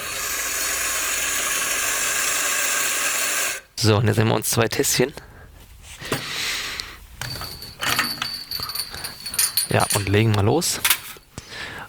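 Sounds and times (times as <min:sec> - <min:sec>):
coffee grinder grinding 18.7 grams of coffee: 0:00.0 - 0:03.7
speech: 0:03.8 - 0:05.3, 0:09.7 - 0:11.0.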